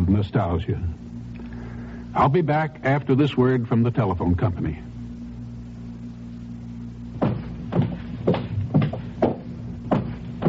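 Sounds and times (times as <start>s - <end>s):
speech: 0.1s - 1.1s, 2.1s - 4.9s
footsteps: 7.2s - 10.4s.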